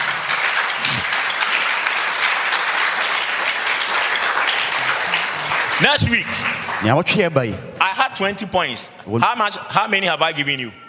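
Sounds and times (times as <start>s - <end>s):
audience clapping: 0.0s - 8.0s
low vocal sound: 0.8s - 1.1s
speech: 5.8s - 10.8s.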